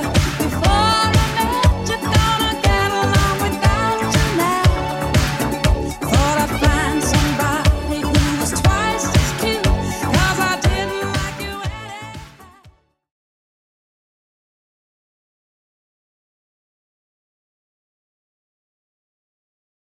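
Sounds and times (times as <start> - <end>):
70s drum machine beat: 0.0 - 12.6.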